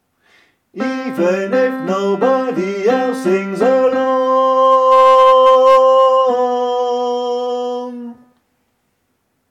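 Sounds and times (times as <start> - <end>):
tenor singing: 0.8 - 8.3.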